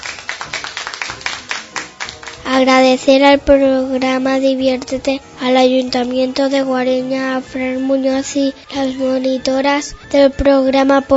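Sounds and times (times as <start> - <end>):
audience clapping in unison at a children's storytelling event: 0.0 - 3.1
speech: 2.5 - 11.1.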